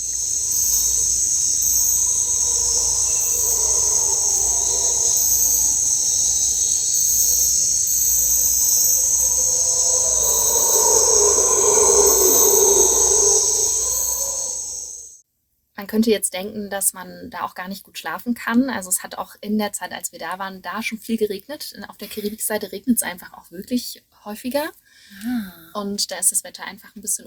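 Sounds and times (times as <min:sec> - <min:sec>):
howler monkeys roaring: 0:00.0 - 0:15.1
crickets and insects chirping: 0:00.0 - 0:15.2
speech: 0:15.9 - 0:27.2.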